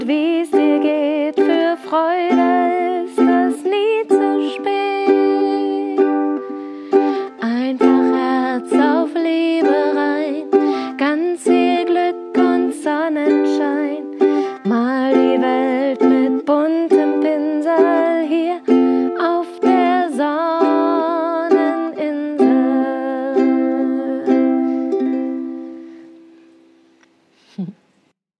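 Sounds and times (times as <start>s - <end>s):
song: 0.0s - 26.8s.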